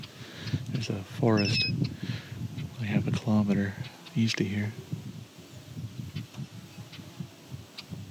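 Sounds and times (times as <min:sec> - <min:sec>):
red-eyed vireo singing in the distance: 0:00.0 - 0:08.0
speech: 0:00.8 - 0:01.9, 0:02.9 - 0:04.9.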